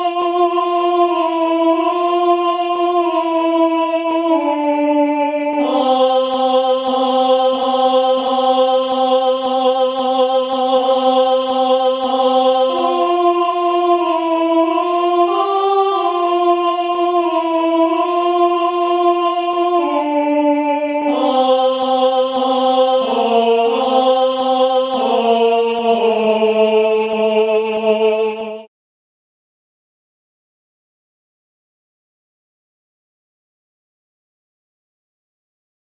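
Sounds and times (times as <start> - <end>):
contraltos singing carol: 0.0 - 28.7.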